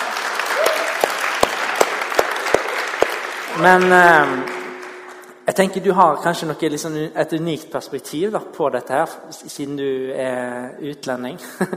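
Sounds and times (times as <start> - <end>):
audience applause: 0.0 - 5.3
speech: 3.6 - 4.5, 5.5 - 11.7.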